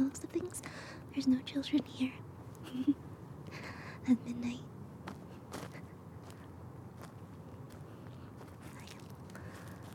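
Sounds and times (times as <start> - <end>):
speech: 1.2 - 3.2, 4.0 - 4.7
footsteps crunching on wood chips at a playground: 5.1 - 9.9.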